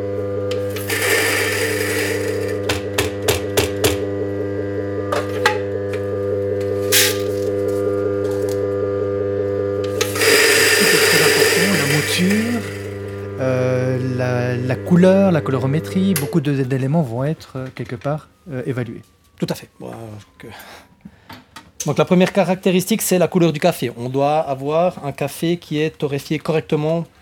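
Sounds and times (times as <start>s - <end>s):
electric coffee grinder milling about 7.5 grams of coffee for a cupping: 0.0s - 16.1s
speech: 14.9s - 19.8s, 21.8s - 27.2s.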